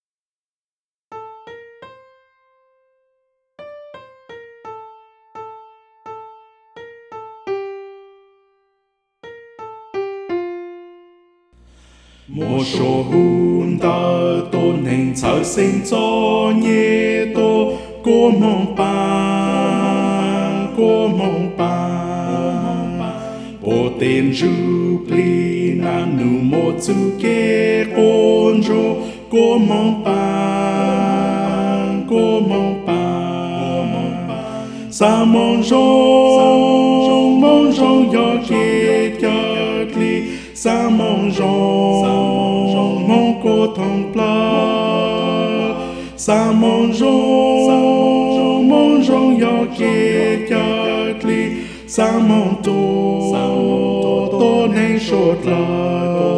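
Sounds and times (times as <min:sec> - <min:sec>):
soprano singing: 0:12.3 - 0:56.3.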